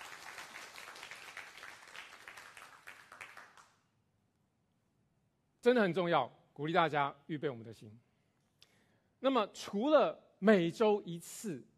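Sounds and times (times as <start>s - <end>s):
audience clapping: 0.0s - 3.8s
speech: 5.6s - 8.1s, 9.2s - 11.7s.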